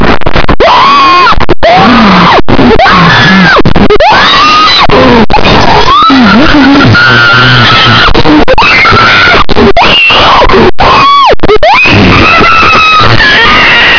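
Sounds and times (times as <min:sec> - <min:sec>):
cat screaming: 0:00.6 - 0:13.9.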